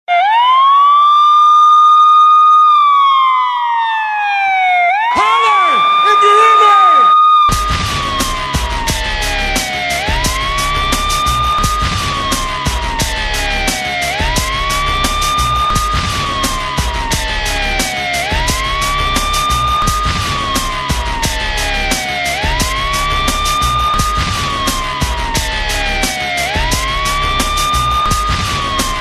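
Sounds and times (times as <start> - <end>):
siren: 0.0 - 29.0.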